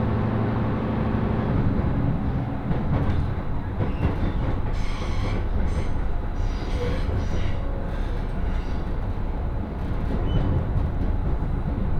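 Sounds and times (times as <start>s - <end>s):
rapid train on the Senseki-Tohoku Line rumbling: 0.0s - 11.9s.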